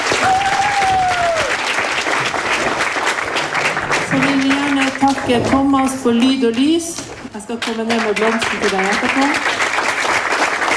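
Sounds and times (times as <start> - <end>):
crowd applauding: 0.0 - 5.3, 7.6 - 10.7
speech: 5.1 - 9.6.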